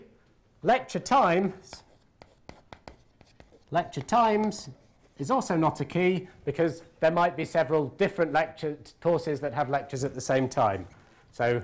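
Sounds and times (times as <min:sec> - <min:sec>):
speech: 0:00.6 - 0:01.8, 0:03.7 - 0:11.6
writing on a board during a lecture: 0:01.6 - 0:05.2.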